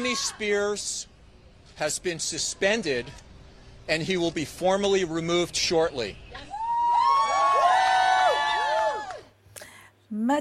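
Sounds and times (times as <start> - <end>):
crowd of protesters shouting and cheering outside a California court: 0.0 - 1.0, 6.3 - 9.4
speech: 0.0 - 1.1, 1.8 - 3.3, 3.9 - 6.5, 10.1 - 10.3.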